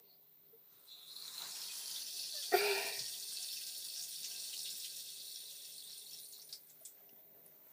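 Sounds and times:
urinating in toilet: 0.8s - 7.0s.

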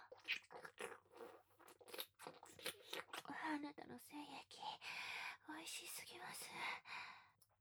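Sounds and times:
wet slurping mouth sounds: 0.1s - 3.3s
speech: 3.5s - 4.8s, 5.5s - 7.1s.

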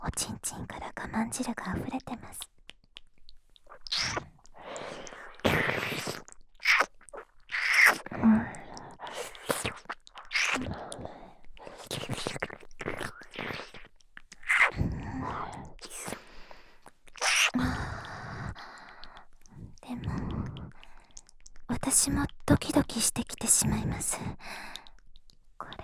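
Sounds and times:
oral sex sounds: 0.7s - 25.0s
ear licking: 2.4s - 21.7s.

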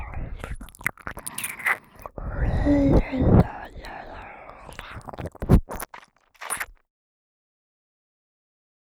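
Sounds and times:
ear licking: 0.0s - 6.8s.

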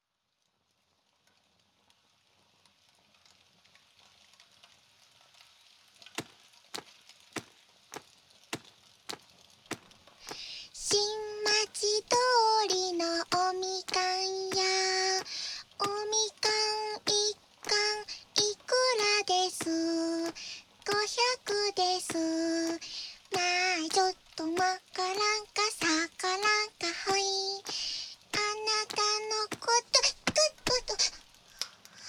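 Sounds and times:
ear cleaning in the right ear: 6.2s - 31.2s.

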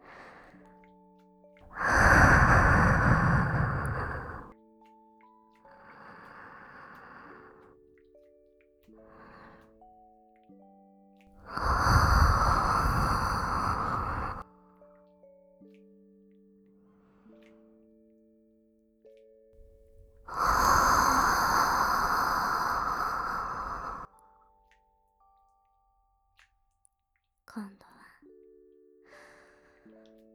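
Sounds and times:
warm breaths blown into the ear: 1.7s - 4.5s, 11.4s - 14.4s, 19.7s - 24.1s.

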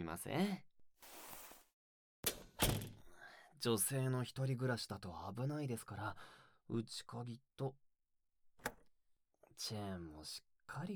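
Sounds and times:
speech: 0.0s - 1.2s, 3.6s - 7.8s, 9.6s - 10.9s
café door shutting thuds: 2.6s - 3.0s.

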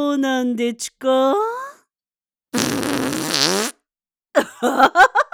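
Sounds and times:
speech: 0.2s - 1.6s, 4.6s - 5.1s
fart: 2.5s - 3.8s.

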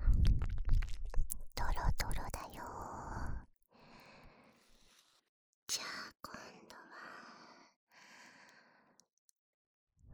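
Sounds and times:
binaural candy licking ASMR: 0.1s - 2.5s.

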